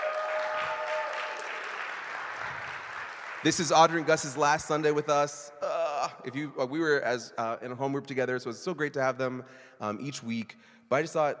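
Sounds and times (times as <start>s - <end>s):
audience clapping: 0.0s - 4.8s
speech: 3.4s - 5.5s, 6.2s - 11.3s.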